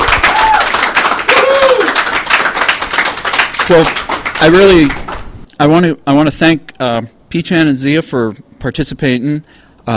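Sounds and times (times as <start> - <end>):
crowd applause: 0.0 - 5.2
speech: 3.7 - 5.0, 5.6 - 9.9.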